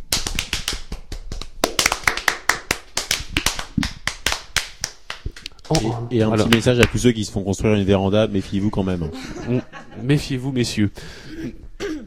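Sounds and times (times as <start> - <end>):
round of applause: 0.1 - 5.9
speech: 5.7 - 11.6
laughter: 8.6 - 10.4.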